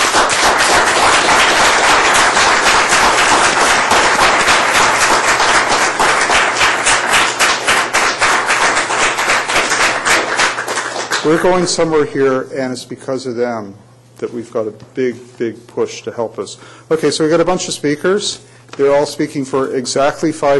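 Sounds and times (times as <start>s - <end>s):
audience applause: 0.0s - 11.5s
speech: 11.3s - 20.5s.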